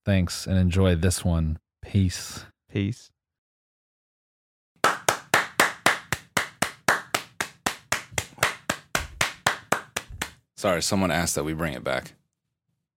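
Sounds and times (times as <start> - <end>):
speech: 0.0 - 3.2, 10.6 - 12.2
clapping: 4.8 - 10.4.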